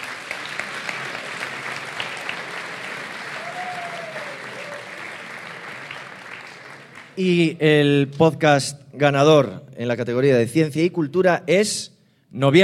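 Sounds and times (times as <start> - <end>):
applause for nominees: 0.0 - 7.4
speech: 7.2 - 12.6.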